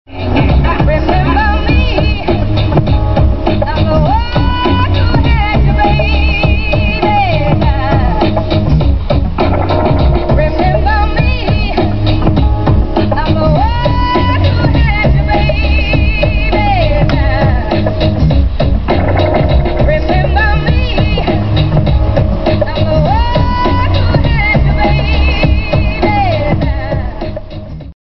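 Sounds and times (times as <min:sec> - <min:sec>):
chillout song: 0:00.1 - 0:27.9.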